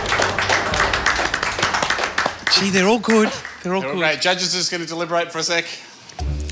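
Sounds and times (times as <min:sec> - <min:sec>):
studio audience applause: 0:00.0 - 0:03.6
speech: 0:02.6 - 0:06.3.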